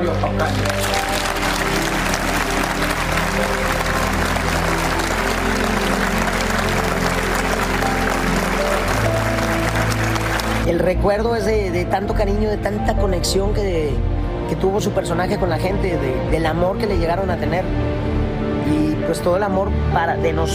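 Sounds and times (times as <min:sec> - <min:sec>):
speech: 0:00.0 - 0:00.9, 0:10.7 - 0:18.0, 0:18.7 - 0:20.5
audience applause: 0:00.3 - 0:10.7.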